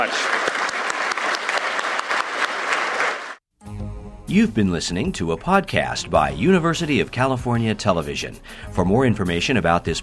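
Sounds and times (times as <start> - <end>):
speech: 0.0 - 0.4, 4.3 - 10.0
audience applause: 0.0 - 3.4.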